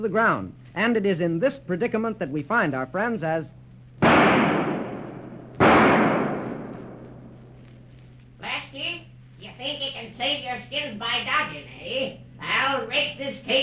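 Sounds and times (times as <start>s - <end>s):
speech: 0.0s - 3.6s, 10.6s - 13.6s
gunshot effects in a radio drama fired in a cave: 4.0s - 7.5s.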